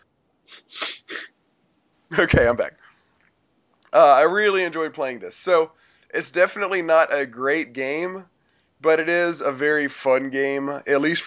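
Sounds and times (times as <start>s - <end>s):
person coughing: 0.5s - 1.3s
speech: 2.1s - 2.9s, 3.9s - 11.2s.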